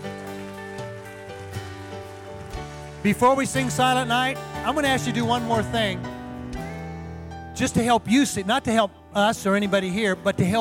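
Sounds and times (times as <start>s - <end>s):
audience applauding: 0.0s - 6.0s
sustained organ-like chords: 0.0s - 9.8s
speech: 3.0s - 6.1s, 7.6s - 10.5s.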